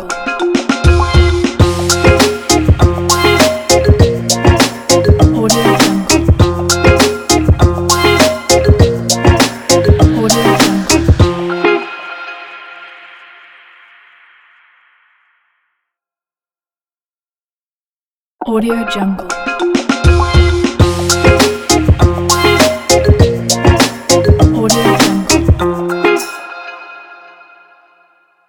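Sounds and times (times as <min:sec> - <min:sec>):
positive vlog podcast opener logo jingle: 0:00.3 - 0:13.5, 0:19.6 - 0:28.0.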